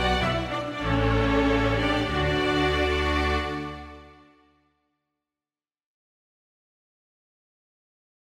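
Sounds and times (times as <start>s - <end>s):
string quintet playing a gavotte: 0.0s - 4.6s.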